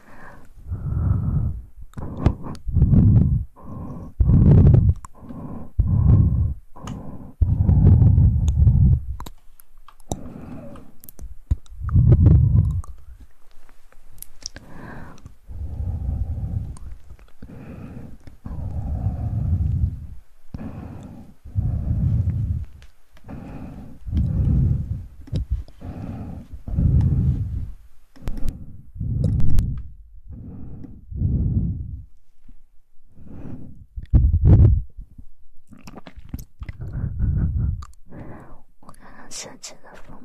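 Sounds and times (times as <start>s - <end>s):
breathy sounds: 0.0s - 9.1s, 10.1s - 11.0s, 14.5s - 34.0s, 36.7s - 40.1s
soft low wet mouth sounds: 0.8s - 13.2s, 14.2s - 17.6s, 18.2s - 27.6s, 28.2s - 29.8s, 35.6s - 38.2s.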